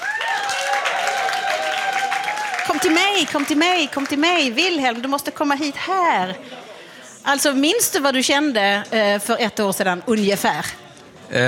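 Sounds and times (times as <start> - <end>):
audience applause: 0.0 - 4.8
speech: 2.8 - 11.4.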